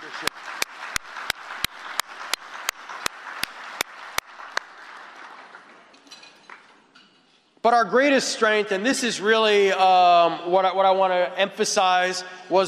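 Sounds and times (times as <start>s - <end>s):
audience applause: 0.0s - 6.0s
speech: 0.2s - 0.5s, 7.6s - 12.6s.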